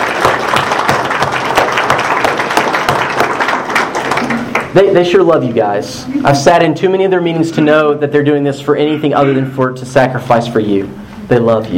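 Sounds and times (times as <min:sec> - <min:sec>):
audience applause: 0:00.0 - 0:04.8
speech: 0:04.8 - 0:11.7.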